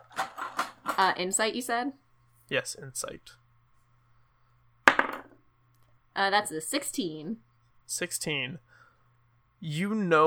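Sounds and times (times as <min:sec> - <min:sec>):
dice being rolled: 0:00.0 - 0:01.0, 0:04.9 - 0:05.4
speech: 0:01.0 - 0:03.4, 0:06.2 - 0:08.7, 0:09.6 - 0:10.2.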